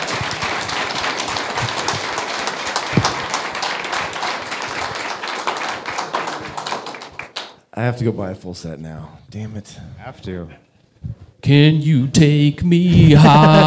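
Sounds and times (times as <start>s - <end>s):
audience applause: 0.0s - 7.6s
speech: 7.8s - 10.7s, 11.5s - 13.6s
laughter: 12.9s - 13.6s.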